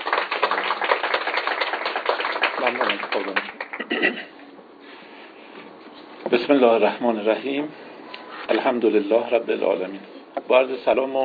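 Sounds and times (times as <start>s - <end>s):
audience applause: 0.0s - 3.9s
speech: 2.6s - 4.4s, 6.3s - 7.8s, 8.5s - 11.2s.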